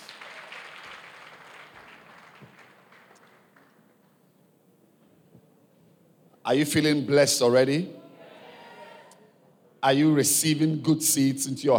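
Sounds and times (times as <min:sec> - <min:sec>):
audience clapping hands: 0:00.0 - 0:04.2
speech: 0:06.5 - 0:08.0, 0:09.8 - 0:11.7.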